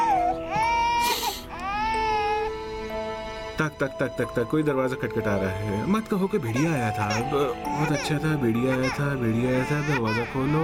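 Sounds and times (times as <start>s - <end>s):
small child crying: 0.0s - 2.6s, 6.4s - 10.6s
speech: 3.6s - 10.6s.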